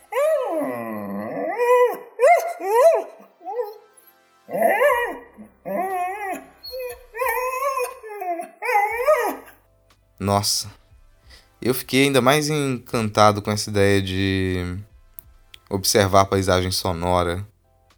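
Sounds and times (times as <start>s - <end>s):
dog howling and whimpering: 0.0s - 3.8s, 4.5s - 9.6s
speech: 10.2s - 10.8s, 11.6s - 14.9s, 15.7s - 17.5s.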